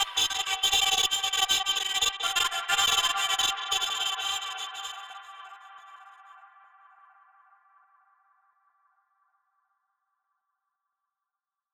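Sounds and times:
extra vocals: 0.0 - 7.2.

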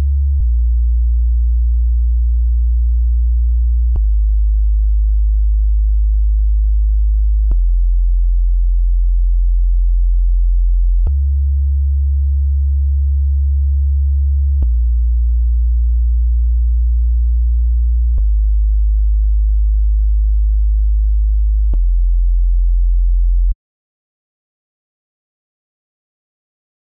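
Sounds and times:
racing sine bass: 0.0 - 23.6.

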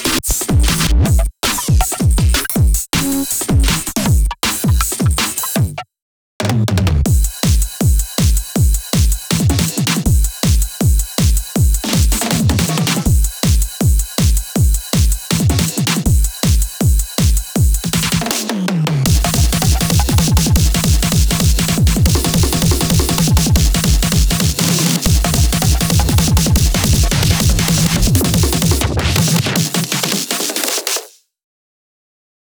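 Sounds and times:
drums bus: 0.0 - 5.8, 6.4 - 31.2.

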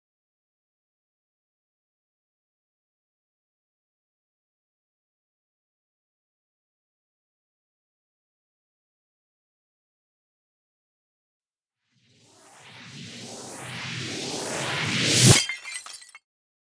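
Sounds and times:
sound effect in B minor: 12.4 - 15.4.

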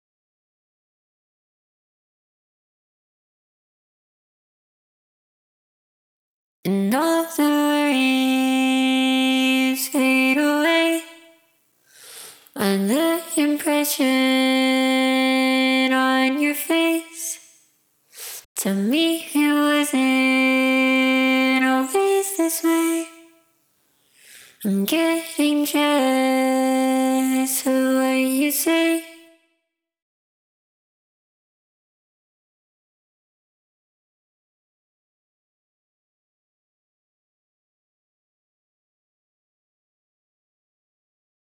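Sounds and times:
a cappella singing: 6.7 - 11.4, 12.5 - 17.6, 18.6 - 23.4, 24.5 - 29.4.

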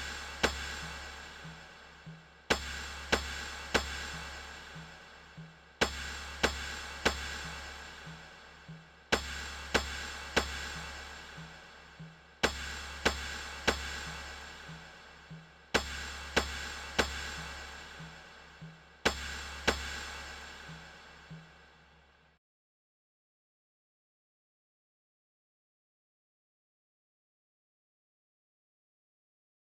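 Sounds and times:
percussion: 0.0 - 22.4.

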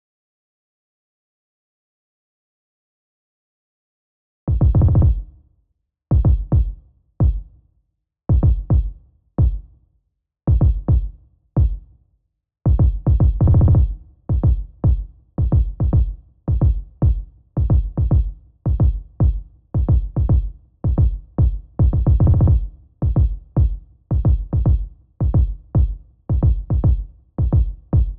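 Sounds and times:
kick drum: 4.5 - 5.4, 6.1 - 7.6, 8.3 - 9.8, 10.5 - 12.0, 12.7 - 28.1.

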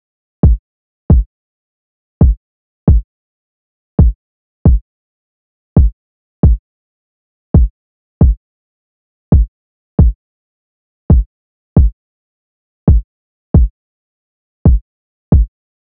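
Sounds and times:
kick drum: 0.4 - 1.3, 2.2 - 3.0, 4.0 - 4.8, 5.8 - 6.6, 7.5 - 8.4, 9.3 - 10.2, 11.1 - 12.0, 12.9 - 13.8, 14.7 - 15.5.

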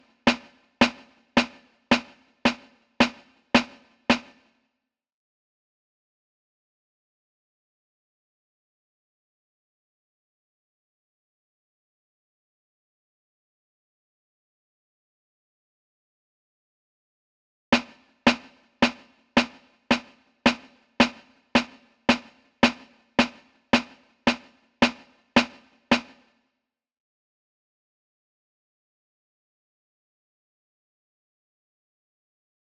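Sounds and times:
snare drum: 0.0 - 4.5, 17.8 - 26.3.

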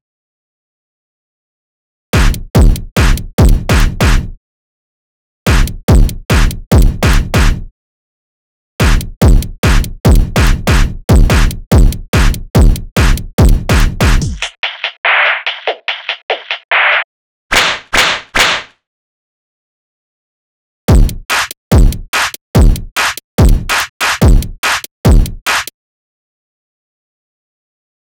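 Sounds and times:
drums: 2.2 - 4.3, 5.5 - 7.7, 8.8 - 17.1, 20.9 - 25.7.

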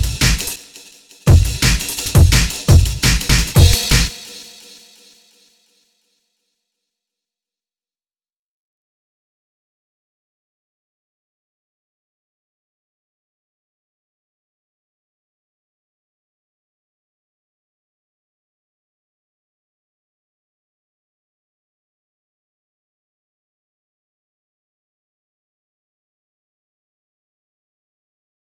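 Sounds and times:
drums: 0.0 - 5.1.

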